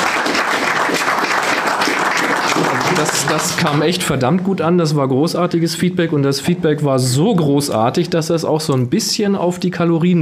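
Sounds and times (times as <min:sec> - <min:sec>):
audience applause: 0:00.0 - 0:04.0
speech: 0:03.0 - 0:10.2.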